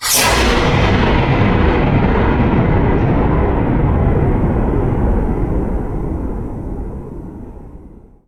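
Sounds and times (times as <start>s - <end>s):
thunder: 0.0s - 8.2s.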